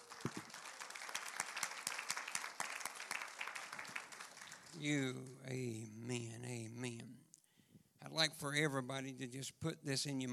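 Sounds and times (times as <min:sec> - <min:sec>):
audience applause: 0:00.0 - 0:05.1
people cheering: 0:00.0 - 0:05.6
speech: 0:04.8 - 0:07.2, 0:08.0 - 0:10.3.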